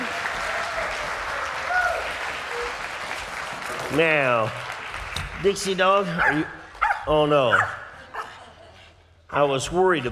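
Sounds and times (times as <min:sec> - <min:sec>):
faint whistles or cheers: 0:00.0 - 0:02.8
audience applause: 0:00.0 - 0:06.8
speech: 0:03.9 - 0:04.7, 0:05.4 - 0:07.8, 0:09.3 - 0:10.0.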